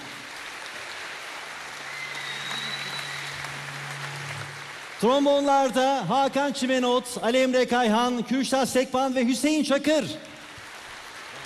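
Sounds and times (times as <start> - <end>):
audience applauding the orchestra: 0.0 - 7.3, 9.9 - 11.4
speech: 5.0 - 10.3.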